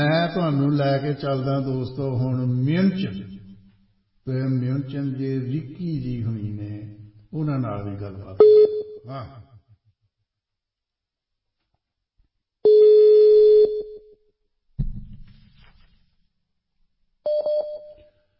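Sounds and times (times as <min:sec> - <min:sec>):
speech: 0:00.3 - 0:03.4, 0:04.2 - 0:09.4
phone call tones while a call is being placed: 0:12.6 - 0:14.0, 0:17.3 - 0:18.1.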